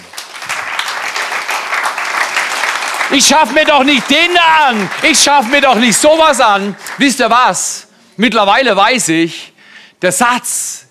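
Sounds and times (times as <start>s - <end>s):
audience applauding: 0.0s - 7.5s
speech: 3.1s - 10.8s.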